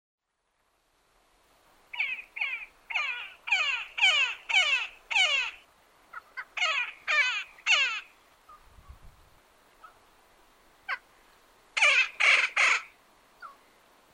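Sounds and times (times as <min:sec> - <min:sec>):
woodpecker giving harsh squawking calls in Patagonia: 0:01.9 - 0:08.6, 0:11.8 - 0:13.6.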